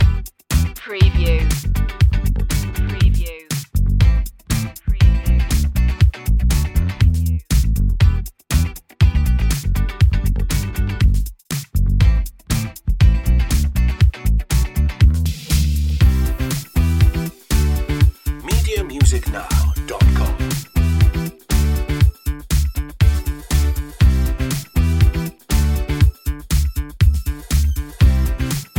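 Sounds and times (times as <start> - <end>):
French disco loop: 0.0 - 14.2, 15.1 - 28.7.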